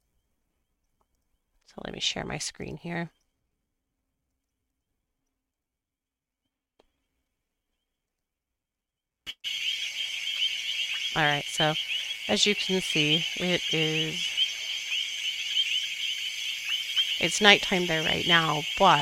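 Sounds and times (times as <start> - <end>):
speech: 1.8 - 3.2, 11.2 - 14.3, 17.2 - 18.9
nighttime insect chorus at African elephant park: 9.3 - 18.9.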